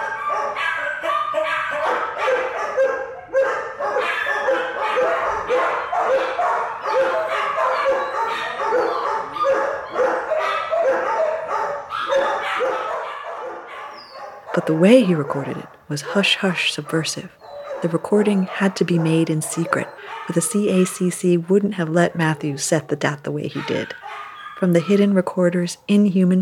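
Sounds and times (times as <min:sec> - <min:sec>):
many dogs barking, yipping and howling: 0:00.0 - 0:25.3
speech: 0:14.6 - 0:24.0, 0:24.6 - 0:26.3.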